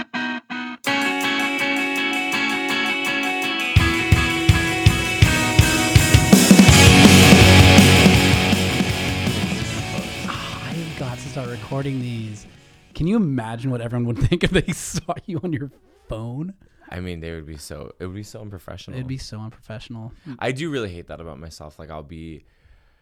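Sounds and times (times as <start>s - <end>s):
podcast theme song: 0.9s - 12.9s
speech: 11.7s - 22.6s.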